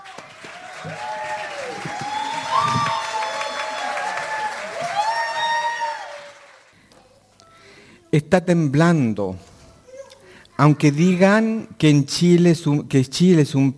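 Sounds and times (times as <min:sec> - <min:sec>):
audience clapping: 0:00.0 - 0:06.8
audience whoops and shouts: 0:00.5 - 0:06.4
speech: 0:08.1 - 0:09.5, 0:10.6 - 0:13.7.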